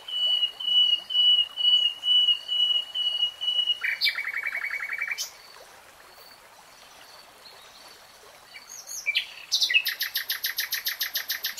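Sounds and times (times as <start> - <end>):
nightingale song: 0.0 - 5.5, 8.5 - 11.5.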